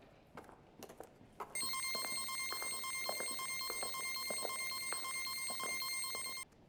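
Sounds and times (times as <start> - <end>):
machine running: 1.6 - 6.4.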